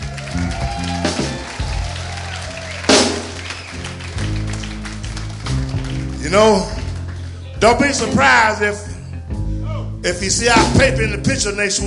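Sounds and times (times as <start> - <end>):
audience applause: 0.0 - 8.5
speech: 6.3 - 6.8, 7.6 - 8.9, 10.0 - 11.8.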